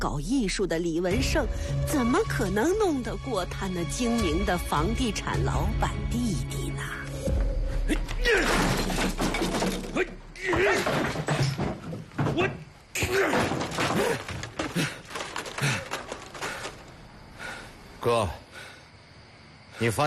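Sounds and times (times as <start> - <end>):
speech: 0.0 - 7.0, 18.1 - 18.4, 19.8 - 20.0
clattering debris: 7.9 - 17.0
architectural scale model being smashed: 8.2 - 16.8.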